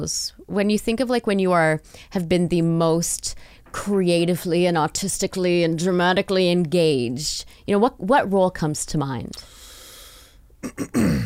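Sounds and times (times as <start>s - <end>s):
speech: 0.0s - 9.6s, 10.6s - 11.2s
man clearing his throat: 10.6s - 11.2s.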